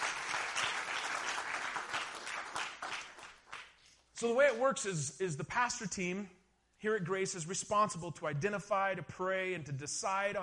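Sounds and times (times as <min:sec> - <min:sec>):
audience applause: 0:00.0 - 0:03.7
speech: 0:04.2 - 0:10.4.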